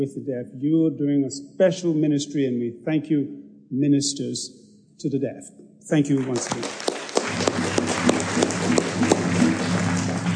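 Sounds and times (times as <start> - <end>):
speech: 0.0 - 7.8
audience clapping: 6.2 - 10.3.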